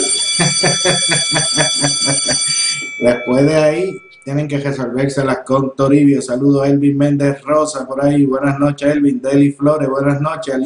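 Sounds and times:
laughter: 0.0 - 3.6
bell ringing: 0.0 - 4.7
speech: 3.0 - 10.6.

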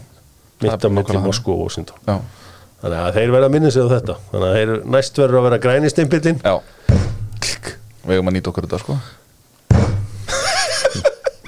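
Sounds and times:
speech: 0.6 - 6.8, 8.1 - 9.2
rubber stamp pressing down: 6.8 - 8.0, 9.7 - 10.2
laughter: 10.3 - 11.4.

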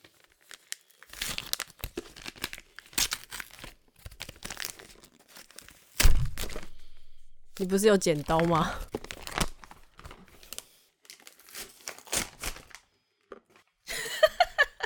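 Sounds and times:
gift wrapping paper being torn open: 0.0 - 12.9
speech: 7.6 - 9.0
laughter: 13.9 - 14.8.

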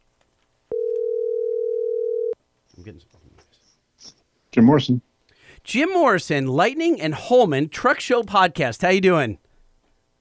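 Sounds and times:
telephone dial tone: 0.7 - 2.4
speech: 2.8 - 9.4.

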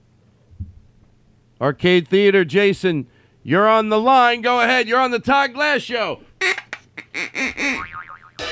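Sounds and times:
speech: 1.6 - 6.3
boing sound effect: 7.4 - 8.4.

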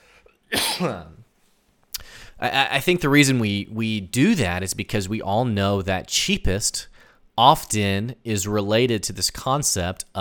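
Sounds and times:
person coughing: 0.5 - 1.2
speech: 0.8 - 1.2, 2.4 - 10.2.

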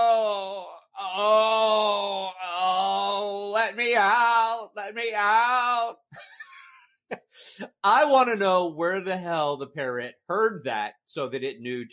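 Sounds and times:
person imitating an injured person moaning: 0.0 - 5.9
speech: 3.7 - 6.3, 7.1 - 11.9.

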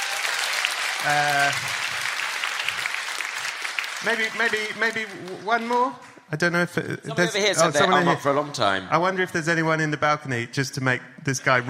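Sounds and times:
audience applause: 0.0 - 6.0
speech: 1.0 - 1.8, 4.0 - 11.6.

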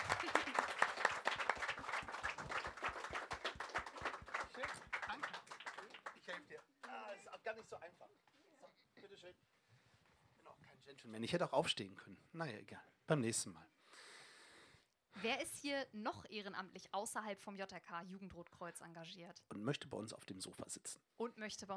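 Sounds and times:
audience applause: 0.0 - 7.3
speech: 10.9 - 13.7, 15.2 - 21.7.

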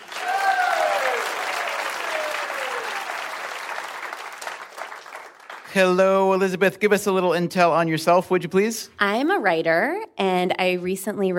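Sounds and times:
cheers: 0.0 - 5.4
crowd applauding welcoming a contestant: 0.0 - 6.2
speech: 5.7 - 11.3.

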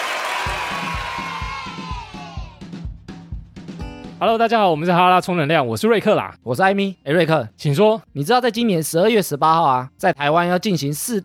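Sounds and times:
applause: 0.0 - 1.9
speech: 4.2 - 11.2.

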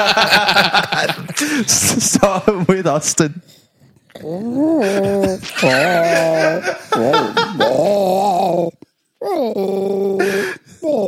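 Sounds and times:
laughter: 0.0 - 2.1, 4.8 - 7.9
speech: 0.0 - 3.6, 4.2 - 11.0
voice imitating Wookiee growl: 4.1 - 11.0.

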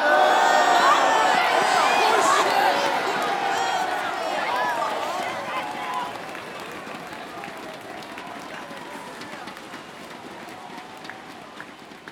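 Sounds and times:
crowd booing: 0.0 - 6.2.

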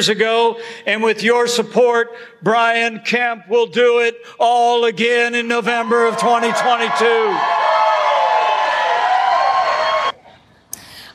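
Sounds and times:
speech: 0.0 - 7.6
crowd cheering at political rally: 5.6 - 10.2.

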